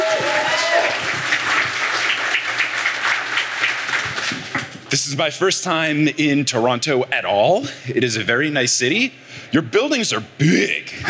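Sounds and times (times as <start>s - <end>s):
crowd cheering and whooping: 0.0s - 2.1s
crowd applauding: 0.0s - 4.6s
speech: 4.9s - 11.0s.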